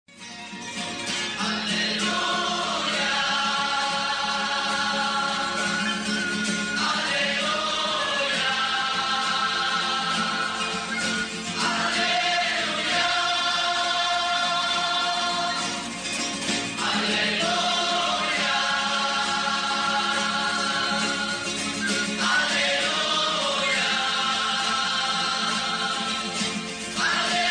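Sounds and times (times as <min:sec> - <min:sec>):
neocatechumenal Alleluia chant singing: 0:01.4 - 0:27.4.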